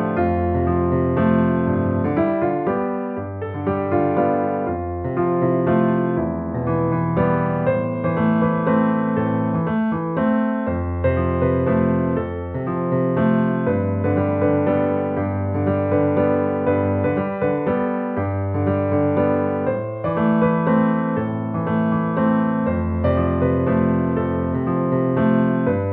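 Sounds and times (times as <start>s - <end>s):
simple piano: 0.0s - 25.9s.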